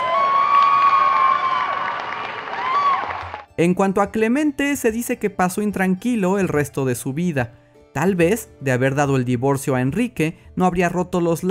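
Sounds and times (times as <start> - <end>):
crowd clapping and cheering: 0.0 - 3.6
speech: 3.6 - 11.4.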